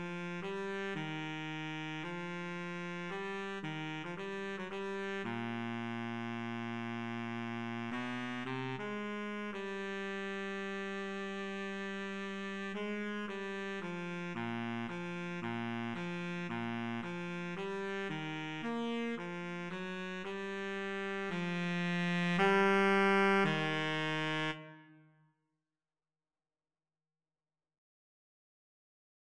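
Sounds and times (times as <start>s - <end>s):
clarinet and saxophone duet: 0.0s - 24.9s.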